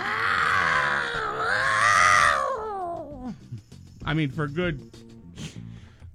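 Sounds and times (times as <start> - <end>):
person imitating a cat in heat yowling: 0.0 - 3.3
speech: 4.1 - 5.0.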